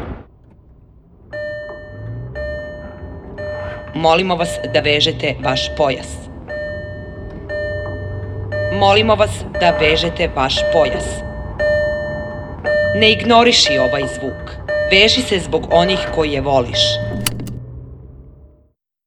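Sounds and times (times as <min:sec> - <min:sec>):
radio jingle: 0:02.5 - 0:17.6.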